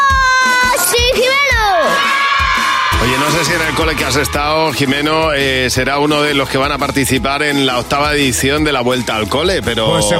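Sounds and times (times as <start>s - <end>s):
children shouting and cheering: 0.0s - 5.2s
speech: 3.4s - 10.1s.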